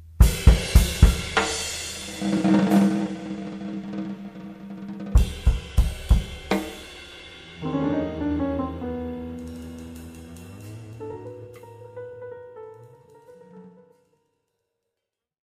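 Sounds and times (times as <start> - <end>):
drum solo: 0.2 - 12.0.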